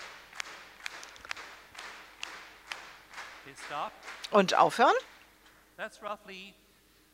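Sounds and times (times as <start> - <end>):
audience clapping together in rhythm: 0.0 - 5.5
quiet hiss: 0.0 - 7.1
speech: 3.5 - 5.1, 5.8 - 6.6.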